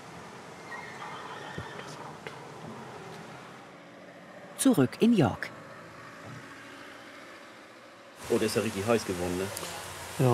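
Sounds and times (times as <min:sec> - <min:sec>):
horse whinnying in a barn: 0:00.7 - 0:02.2
speech: 0:04.6 - 0:05.6, 0:08.3 - 0:10.3.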